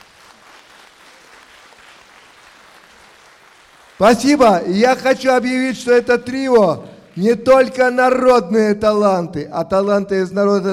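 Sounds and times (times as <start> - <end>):
audience applause: 0.0 - 8.0
speech: 4.0 - 10.7.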